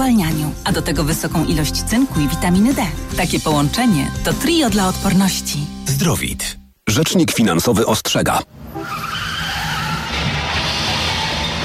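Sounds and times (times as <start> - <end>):
speech: 0.1 - 9.0
car tires squealing in a skid: 8.7 - 11.6
harsh grinding noise: 9.8 - 11.6.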